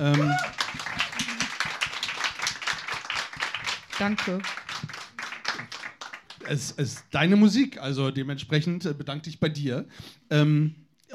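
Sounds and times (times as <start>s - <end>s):
speech: 0.0s - 0.6s, 4.0s - 4.6s, 6.5s - 11.1s
hands clapping: 0.0s - 7.1s.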